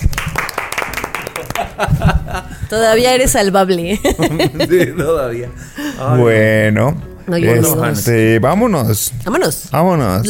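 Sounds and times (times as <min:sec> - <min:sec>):
short scattered applause from a few hands: 0:00.0 - 0:01.9
laughter: 0:01.3 - 0:02.7, 0:03.9 - 0:05.9
speech: 0:01.8 - 0:10.2.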